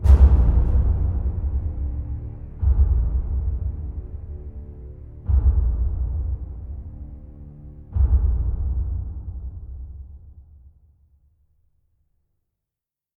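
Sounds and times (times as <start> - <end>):
drums: 0.0 - 7.2, 7.8 - 10.8.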